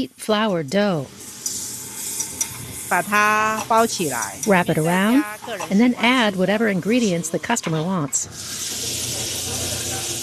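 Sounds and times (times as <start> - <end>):
speech: 0.0 - 1.2, 2.9 - 8.6
egg cooking on a griddle for a danbing: 1.2 - 3.0, 8.3 - 10.2.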